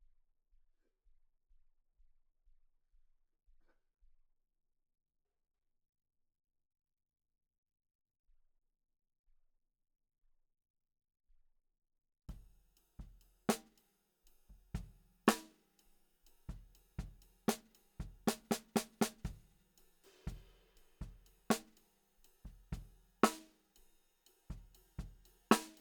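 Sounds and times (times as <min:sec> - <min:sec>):
snare drum: 0:12.3 - 0:13.8, 0:14.5 - 0:15.7, 0:16.3 - 0:25.8.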